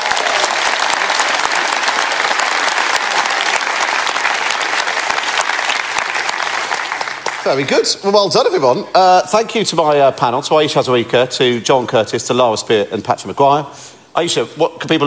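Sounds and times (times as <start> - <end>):
audience applause: 0.0 - 7.8
speech: 7.4 - 15.0.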